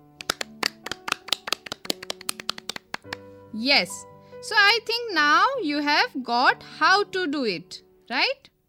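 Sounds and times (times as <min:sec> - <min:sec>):
five-finger hand clapping imitating heavy rain: 0:00.0 - 0:03.2
speech: 0:03.0 - 0:08.5.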